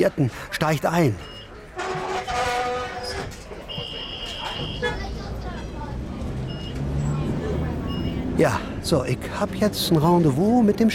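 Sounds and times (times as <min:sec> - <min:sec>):
speech: 0:00.0 - 0:01.4, 0:08.4 - 0:10.9
streetcar metallic squeals: 0:01.3 - 0:04.8
streetcar in the Garden District rumbling along its rails: 0:01.6 - 0:10.9.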